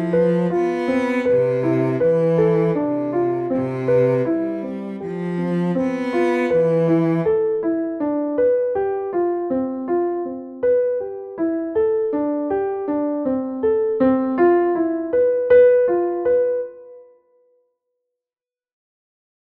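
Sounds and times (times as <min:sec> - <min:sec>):
cello: 0:00.0 - 0:08.1
piano: 0:00.0 - 0:17.7.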